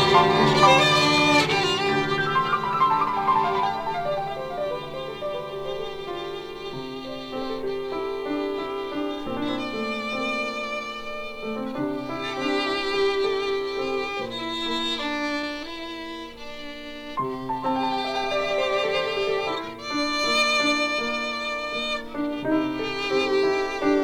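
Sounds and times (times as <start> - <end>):
pianoforte playing a scherzo: 0.0 - 24.0
violin playing a scherzo: 0.0 - 24.0.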